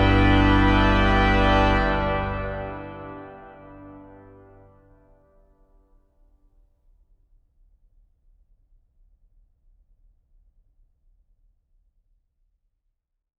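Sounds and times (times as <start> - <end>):
organ pedal point in G major: 0.0 - 4.8.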